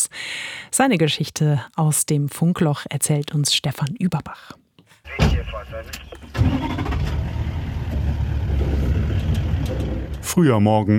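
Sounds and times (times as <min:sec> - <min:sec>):
speech: 0:00.8 - 0:07.0, 0:10.3 - 0:10.9
voice: 0:05.1 - 0:06.3
safari jeep engine starting and idling: 0:05.1 - 0:10.4.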